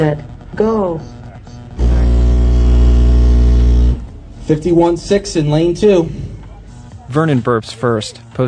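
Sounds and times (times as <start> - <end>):
speech: 0.0 - 1.2, 4.5 - 6.3, 7.1 - 8.4
car stereo system blasting a bass burst: 1.7 - 4.2.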